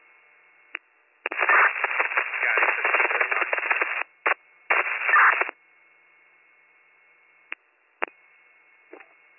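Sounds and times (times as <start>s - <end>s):
radio static from failed transmission: 1.3s - 5.6s.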